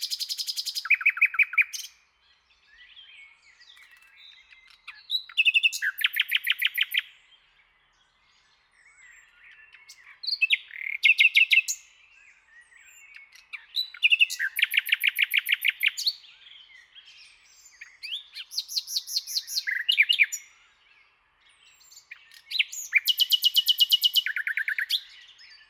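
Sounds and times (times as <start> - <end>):
common nightingale song: 0.0 - 25.6.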